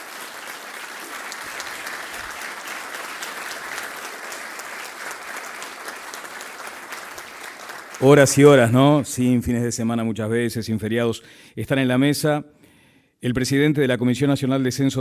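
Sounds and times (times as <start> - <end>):
audience applause at a formal event about the 2023 national census: 0.0 - 9.0
speech: 8.0 - 12.6, 13.2 - 14.9.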